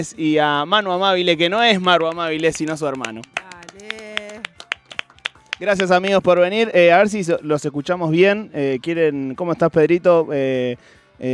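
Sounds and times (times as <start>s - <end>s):
speech: 0.0s - 3.4s, 5.6s - 11.3s
crowd clapping: 1.7s - 6.3s.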